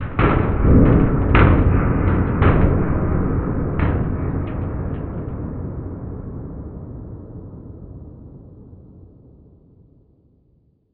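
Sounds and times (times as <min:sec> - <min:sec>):
distant big hit: 0:00.0 - 0:07.0.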